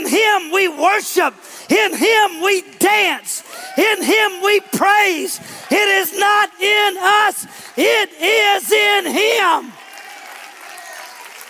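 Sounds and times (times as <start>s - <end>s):
speech: 0.1s - 9.8s
audience clapping: 2.2s - 11.4s.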